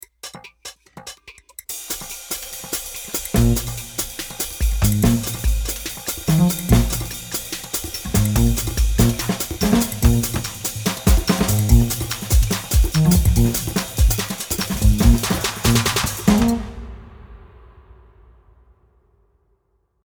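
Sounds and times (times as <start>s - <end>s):
jazz music: 2.9s - 17.1s.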